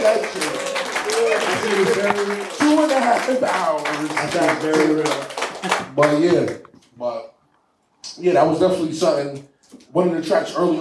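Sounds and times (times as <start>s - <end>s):
audience clapping: 0.0s - 6.7s
speech: 1.8s - 7.3s, 8.1s - 10.7s.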